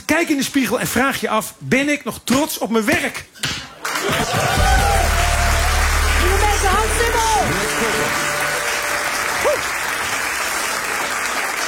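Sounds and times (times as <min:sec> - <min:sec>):
speech: 0:00.2 - 0:03.4, 0:04.0 - 0:04.8
audience applause: 0:03.8 - 0:11.6.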